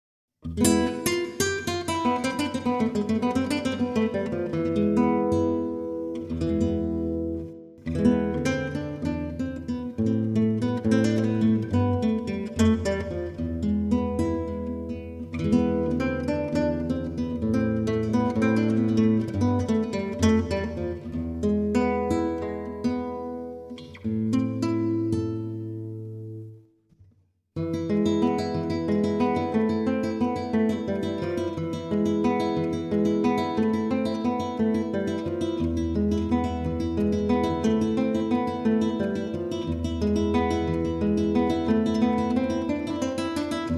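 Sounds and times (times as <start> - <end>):
Spanish guitar: 0.4 - 43.7.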